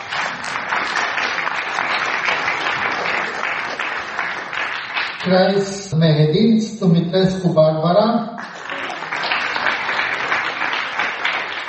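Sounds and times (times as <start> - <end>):
applause: 0.0 - 5.8, 8.4 - 11.6
speech: 5.2 - 8.3.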